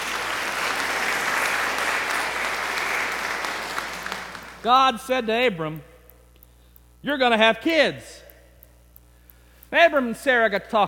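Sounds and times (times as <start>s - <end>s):
audience applause: 0.0s - 4.6s
speech: 4.6s - 5.9s, 7.0s - 8.1s, 9.7s - 10.8s.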